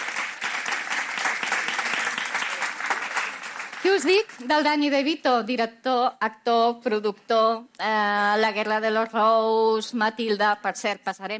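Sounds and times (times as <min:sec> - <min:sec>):
audience applause: 0:00.0 - 0:04.4
speech: 0:03.8 - 0:11.3.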